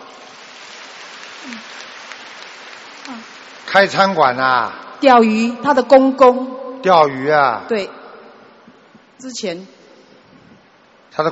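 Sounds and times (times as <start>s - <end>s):
audience applause: 0.0s - 4.5s
speech: 1.4s - 1.9s, 3.1s - 8.0s, 9.2s - 9.8s.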